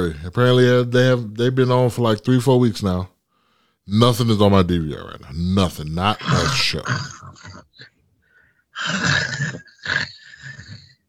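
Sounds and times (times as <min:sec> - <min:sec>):
speech: 0:00.0 - 0:03.1, 0:03.8 - 0:07.9, 0:08.8 - 0:10.6
person imitating snoring with rasping throaty snorts: 0:06.2 - 0:08.0, 0:08.8 - 0:11.0.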